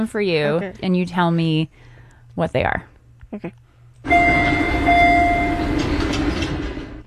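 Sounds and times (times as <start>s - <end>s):
speech: 0.0s - 4.3s
red line subway train chime: 4.0s - 7.0s.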